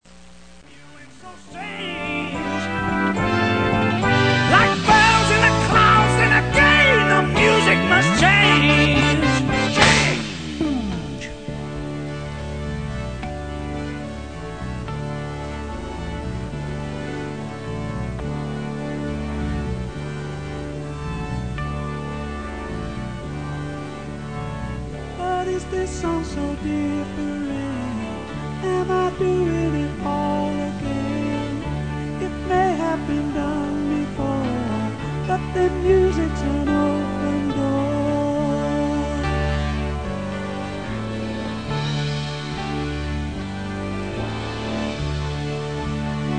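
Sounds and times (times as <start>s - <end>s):
music: 0.0s - 46.3s.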